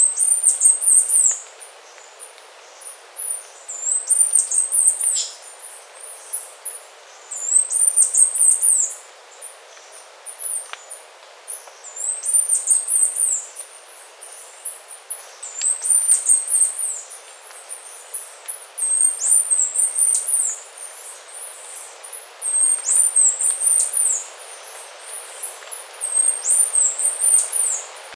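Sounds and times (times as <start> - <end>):
bird calling: 0.0 - 1.4, 3.7 - 5.4, 7.3 - 9.0, 15.2 - 17.2, 18.1 - 27.9
hiss: 0.0 - 28.1.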